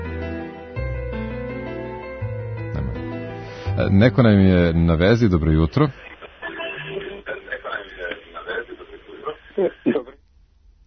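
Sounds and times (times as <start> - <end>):
speech: 3.8 - 6.0
caller's radio playing through a telephone line: 5.6 - 10.2.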